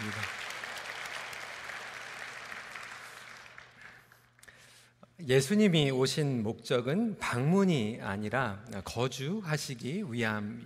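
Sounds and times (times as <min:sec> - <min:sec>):
audience applause: 0:00.0 - 0:04.2
speech: 0:05.2 - 0:10.6.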